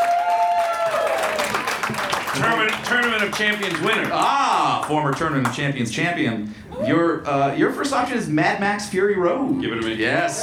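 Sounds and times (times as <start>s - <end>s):
game show studio audience applauding: 0.0s - 5.8s
speech: 2.4s - 10.4s.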